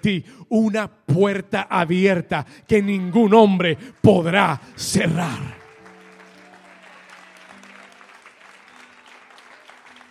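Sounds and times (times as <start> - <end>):
speech: 0.0 - 5.6
audience applauding: 2.8 - 10.1.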